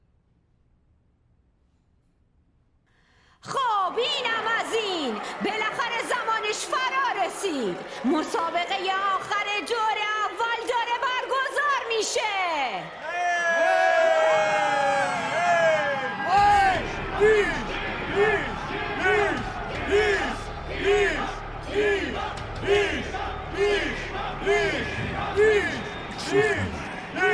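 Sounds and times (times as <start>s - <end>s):
stadium crowd cheering during the last match of a competition's first round: 3.4s - 27.3s
speech: 6.6s - 10.1s
held voice: 26.2s - 27.3s.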